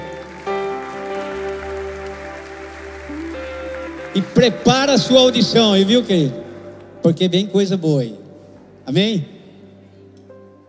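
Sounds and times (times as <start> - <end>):
audience applauding: 0.0 - 7.4
speech: 4.2 - 6.4, 7.0 - 8.2, 8.9 - 9.4.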